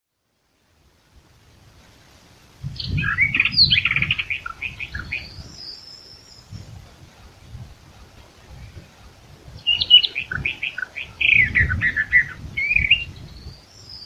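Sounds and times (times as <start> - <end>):
Eastern Orphean Warbler Sylvia crassirostris singing: 2.7 - 14.0.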